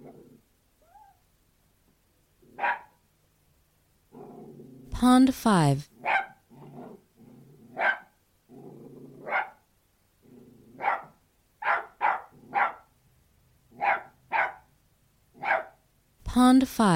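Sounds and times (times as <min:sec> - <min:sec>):
Australian terrier growling: 0:00.0 - 0:00.4, 0:04.1 - 0:04.9, 0:06.5 - 0:07.8, 0:08.5 - 0:09.4, 0:10.2 - 0:10.9
Australian terrier barking: 0:02.6 - 0:03.0, 0:06.0 - 0:07.0, 0:07.7 - 0:08.2, 0:09.2 - 0:09.6, 0:10.8 - 0:12.9, 0:13.7 - 0:14.7, 0:15.4 - 0:15.8
speech: 0:05.0 - 0:05.9, 0:16.5 - 0:16.9.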